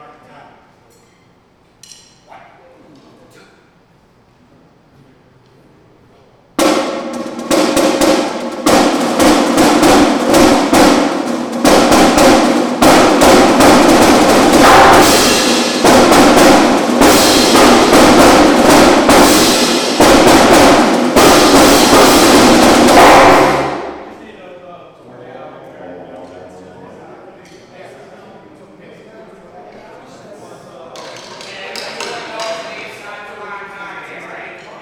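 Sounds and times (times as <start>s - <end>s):
drum intro: 6.4s - 24.2s.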